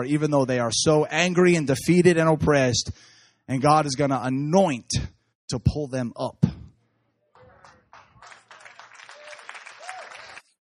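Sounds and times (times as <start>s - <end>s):
speech: 0.0s - 6.6s
audience applause: 7.4s - 10.6s.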